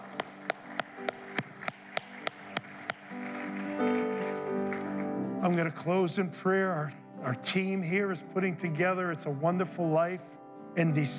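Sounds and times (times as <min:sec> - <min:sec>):
group clapping in unison: 0:00.0 - 0:05.0
speech: 0:05.5 - 0:11.1.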